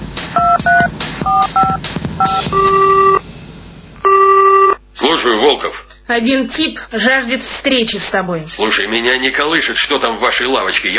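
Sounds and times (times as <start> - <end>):
telephone keypad dialing beeps: 0.4 - 3.2, 4.1 - 4.8
telephone ringback tone: 0.4 - 3.2, 4.0 - 4.8
speech: 5.2 - 10.9.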